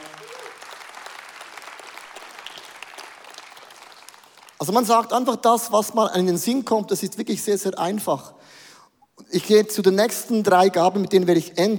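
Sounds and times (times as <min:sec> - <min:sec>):
audience applause: 0:00.0 - 0:04.6
speech: 0:04.6 - 0:08.6, 0:09.3 - 0:11.7.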